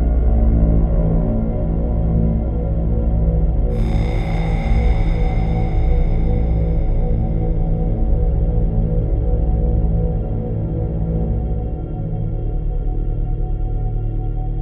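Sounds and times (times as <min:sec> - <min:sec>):
ambience: 0:00.2 - 0:14.5.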